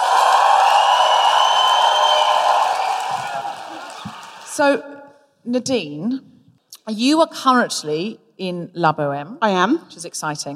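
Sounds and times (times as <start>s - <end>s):
audience cheering and whooping to welcome an opera singer at the Coliseum: 0.0s - 4.6s
speech: 4.6s - 6.3s, 6.9s - 10.5s.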